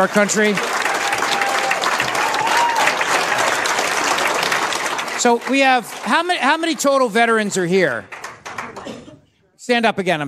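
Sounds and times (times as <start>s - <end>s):
speech: 0.0s - 0.8s, 5.2s - 8.2s, 9.6s - 10.2s
audience applause: 0.0s - 9.0s.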